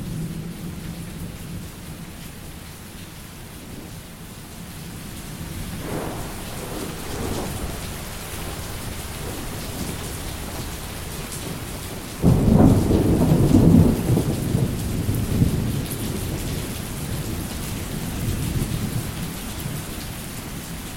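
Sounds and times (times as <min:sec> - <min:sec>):
thunder: 0:05.7 - 0:19.2.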